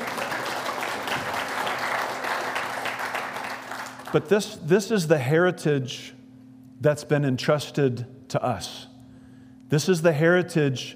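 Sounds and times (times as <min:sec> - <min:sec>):
audience clapping: 0:00.0 - 0:04.3
speech: 0:04.1 - 0:06.2, 0:06.8 - 0:08.9, 0:09.7 - 0:10.9.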